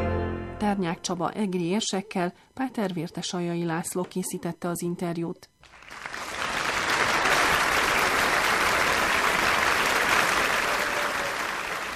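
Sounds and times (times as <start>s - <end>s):
speech: 0.6s - 6.2s
applause: 5.6s - 11.9s.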